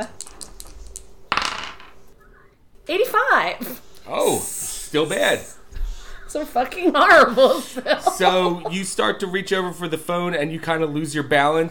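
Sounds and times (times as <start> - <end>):
two dice clattering onto a hard surface: 0.1 - 2.0
speech: 2.9 - 5.6, 6.3 - 11.6
laughter: 6.9 - 9.0.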